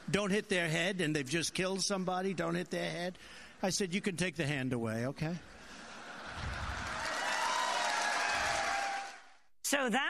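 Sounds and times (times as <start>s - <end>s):
speech: 0.1s - 5.6s, 9.7s - 10.0s
police officers applauding: 6.3s - 9.4s.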